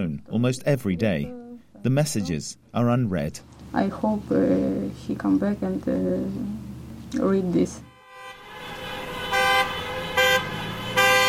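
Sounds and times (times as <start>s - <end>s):
speech: 0.0s - 7.9s
street traffic rumble: 3.4s - 11.2s
car horns honking in street: 7.8s - 11.2s.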